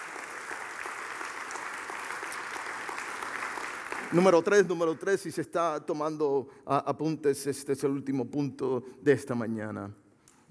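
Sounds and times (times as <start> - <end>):
audience applause: 0.0 - 5.3
speech: 4.1 - 10.4.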